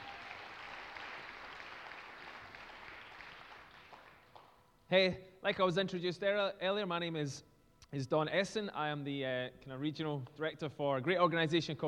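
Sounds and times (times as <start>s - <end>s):
round of applause: 0.0s - 4.6s
speech: 4.9s - 11.8s.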